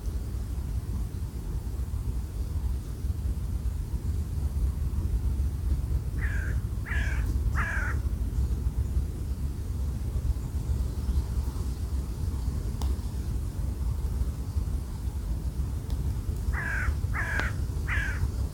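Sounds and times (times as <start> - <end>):
loud rumbling wind: 0.0 - 18.5
bird rough caws: 6.2 - 8.1, 16.5 - 18.4.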